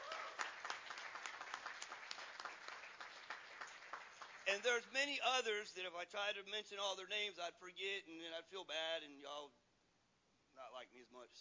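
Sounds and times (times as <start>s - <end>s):
audience applause: 0.0s - 4.8s
speech: 4.5s - 9.6s, 10.6s - 11.3s.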